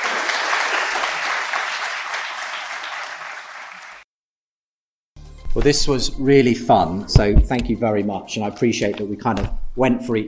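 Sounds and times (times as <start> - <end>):
audience applause: 0.0 - 4.0
speech: 5.6 - 10.2.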